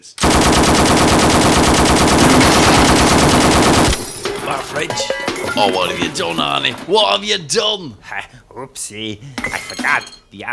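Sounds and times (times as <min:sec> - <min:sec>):
speech: 0:00.0 - 0:00.6, 0:04.8 - 0:10.5
automatic gunfire shooting a lock: 0:00.0 - 0:04.6.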